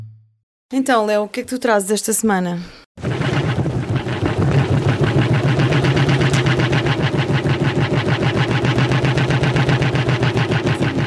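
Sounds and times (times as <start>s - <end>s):
speech: 0.9s - 2.8s
car starter motor trying to start engine: 3.0s - 11.0s.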